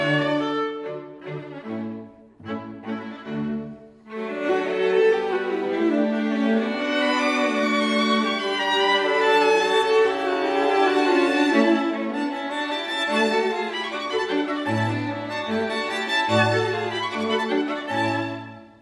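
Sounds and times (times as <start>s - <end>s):
string quartet playing in D major: 0.0s - 18.8s.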